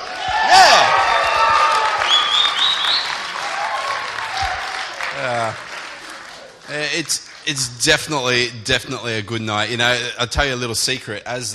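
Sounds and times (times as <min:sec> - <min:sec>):
audience clapping: 0:00.0 - 0:08.4
speech: 0:07.0 - 0:11.5.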